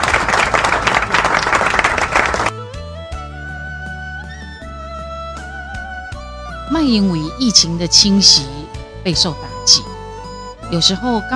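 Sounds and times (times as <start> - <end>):
audience applause: 0.0 - 2.5
speech: 6.8 - 9.9, 10.7 - 11.3.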